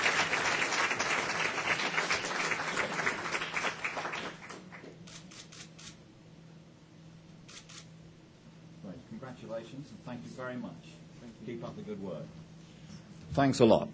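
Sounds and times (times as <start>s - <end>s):
round of applause: 0.0s - 5.0s
speech: 9.5s - 12.4s, 13.3s - 13.9s.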